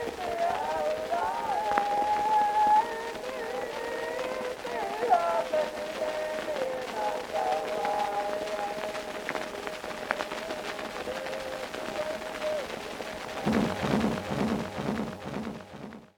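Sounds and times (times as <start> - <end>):
chorus singing on an Edison Blue Amberol cylinder recording: 0.0 - 16.0.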